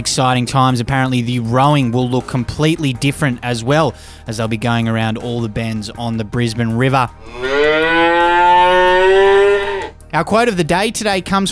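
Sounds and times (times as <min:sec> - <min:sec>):
speech: 0:00.0 - 0:08.1, 0:10.1 - 0:11.4
cow mooing: 0:07.2 - 0:10.0.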